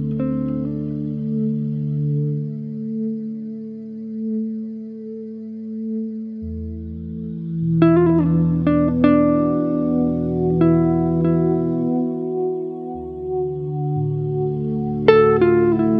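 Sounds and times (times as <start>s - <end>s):
guitar synth drone: 0.0s - 15.9s.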